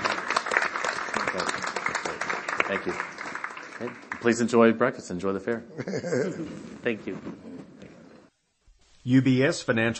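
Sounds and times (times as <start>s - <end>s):
round of applause: 0.0s - 4.7s
speech: 2.7s - 3.2s, 3.8s - 7.5s, 9.0s - 9.9s
laughter: 5.6s - 6.8s.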